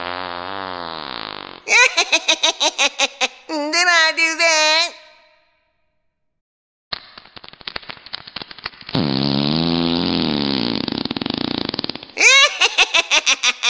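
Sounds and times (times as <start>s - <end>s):
fart: 0.0s - 1.7s, 8.4s - 12.2s
laughter: 1.7s - 3.6s, 12.2s - 13.6s
speech: 1.7s - 5.0s.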